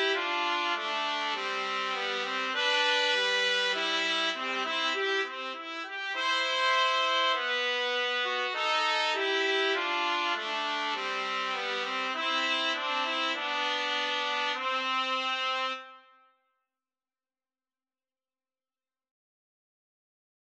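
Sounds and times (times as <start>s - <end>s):
trumpet trio playing a wedding march: 0.0s - 15.9s.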